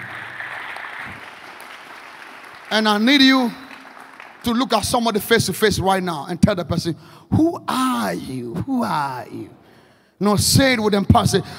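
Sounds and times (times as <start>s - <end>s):
audience clapping: 0.0s - 5.2s
speech: 2.7s - 3.6s, 4.4s - 9.6s, 10.2s - 11.5s.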